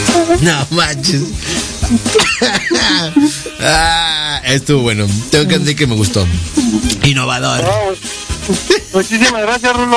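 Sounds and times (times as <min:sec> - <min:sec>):
speech: 0:00.3 - 0:09.9
laughter: 0:00.9 - 0:04.4, 0:05.4 - 0:07.1
coughing fit: 0:01.4 - 0:04.0.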